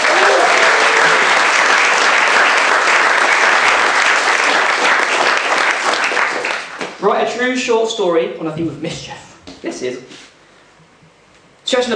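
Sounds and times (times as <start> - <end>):
crowd applause: 0.0 - 7.0
speech: 7.1 - 10.2, 11.7 - 11.9.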